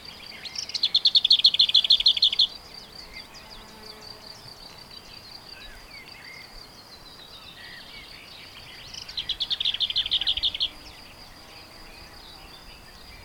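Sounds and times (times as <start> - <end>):
lesser whitethroat: 0.0 - 13.2.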